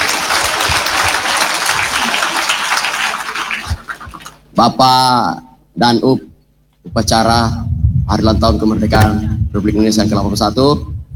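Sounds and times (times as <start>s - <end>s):
crowd clapping at an Indonesian Independence Day ceremony in Bone regency: 0.0s - 4.4s
speech: 4.6s - 10.9s.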